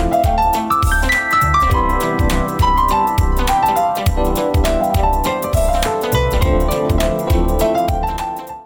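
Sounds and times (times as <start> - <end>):
smooth funk music bed: 0.0 - 8.6.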